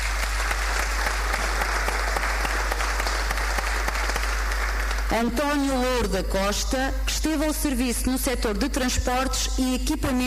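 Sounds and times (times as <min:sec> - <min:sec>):
audience applause: 0:00.0 - 0:05.2
speech: 0:05.1 - 0:10.2.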